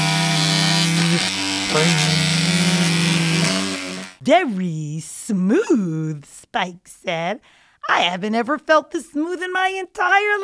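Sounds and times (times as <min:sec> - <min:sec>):
barber's electric hair clippers buzzing: 0:00.0 - 0:04.2
speech: 0:04.2 - 0:10.4.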